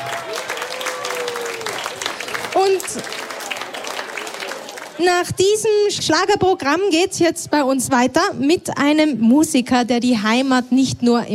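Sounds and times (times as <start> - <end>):
audience applause for a singer after a Schlager performance in Tirol: 0.0 - 5.0
speech: 2.6 - 3.2, 5.0 - 11.3.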